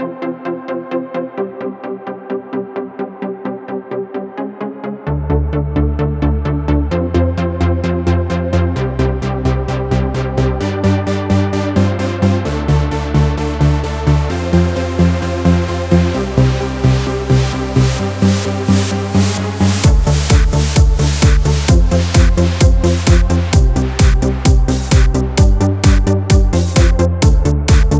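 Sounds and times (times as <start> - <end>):
electro music: 0.0 - 27.9.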